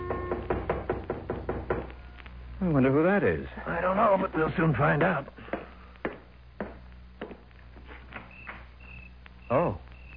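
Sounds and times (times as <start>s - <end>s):
knocking on a door: 0.0s - 1.9s
speech: 2.6s - 5.4s.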